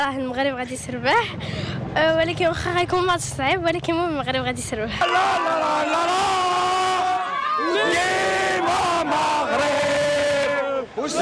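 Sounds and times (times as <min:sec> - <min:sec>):
speech: 0:00.0 - 0:06.4, 0:07.6 - 0:09.8, 0:11.0 - 0:11.2
Moroccan football fans shouting and chanting in Rabat: 0:05.0 - 0:11.2.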